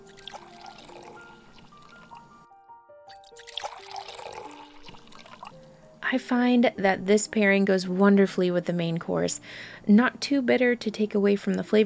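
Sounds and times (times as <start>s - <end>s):
Spanish red wine pouring: 0.0s - 2.5s, 3.1s - 5.8s
speech: 6.1s - 11.8s.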